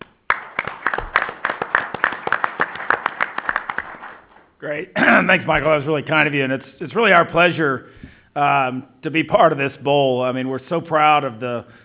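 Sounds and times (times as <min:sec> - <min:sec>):
audience applause: 0:00.2 - 0:04.5
speech: 0:04.6 - 0:11.8.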